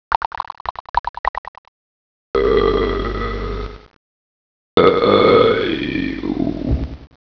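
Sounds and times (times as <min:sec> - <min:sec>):
person burping: 0:02.4 - 0:03.9, 0:04.8 - 0:06.7.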